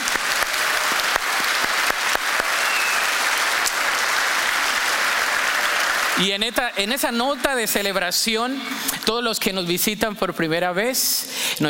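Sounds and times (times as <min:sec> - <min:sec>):
audience applause: 0:00.0 - 0:09.0
speech: 0:06.2 - 0:11.6.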